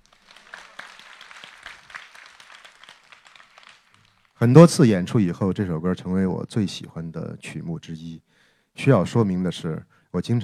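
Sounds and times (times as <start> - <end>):
audience applause: 0.0 - 4.4
speech: 4.4 - 10.4.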